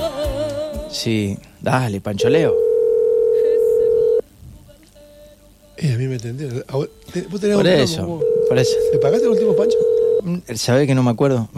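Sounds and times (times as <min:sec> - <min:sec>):
low noise: 0:00.0 - 0:11.5
speech: 0:00.9 - 0:02.6, 0:05.8 - 0:11.5
phone ringing tone on an unanswered call: 0:02.2 - 0:04.2, 0:08.2 - 0:10.2.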